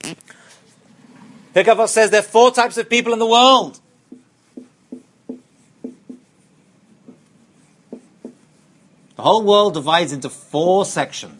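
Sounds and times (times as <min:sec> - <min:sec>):
speech: 0:00.1 - 0:00.6, 0:01.5 - 0:03.8, 0:09.2 - 0:11.3
scratchy writing strokes on a board: 0:04.0 - 0:09.2.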